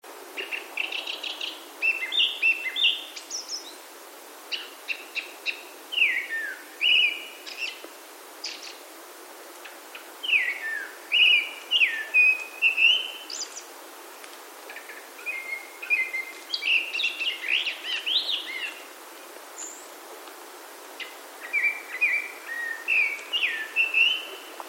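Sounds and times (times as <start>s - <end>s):
Japanese thrush song: 0.4s - 3.8s, 4.5s - 7.8s, 8.4s - 8.8s, 9.6s - 13.7s, 14.7s - 18.8s, 19.6s - 19.9s, 21.0s - 24.6s.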